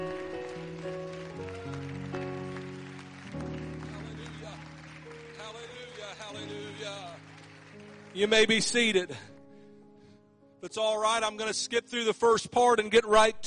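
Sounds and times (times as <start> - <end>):
audience clapping: 0.0 - 9.3
speech: 8.2 - 9.3, 10.6 - 13.4.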